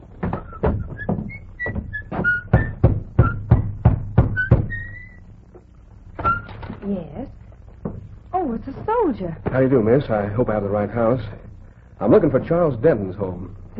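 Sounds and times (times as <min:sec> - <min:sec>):
knocking on a cottage door: 0:00.2 - 0:05.2, 0:07.8 - 0:10.1
faint high whistle-like tones: 0:00.3 - 0:03.7, 0:04.3 - 0:05.3, 0:06.2 - 0:06.6
speech: 0:09.1 - 0:11.4, 0:12.0 - 0:13.7.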